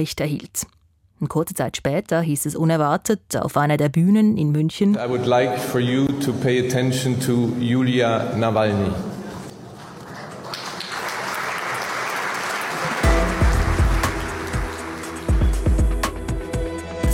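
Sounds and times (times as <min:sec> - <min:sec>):
speech: 0:00.0 - 0:09.2
audience standing and applauding: 0:09.6 - 0:16.3.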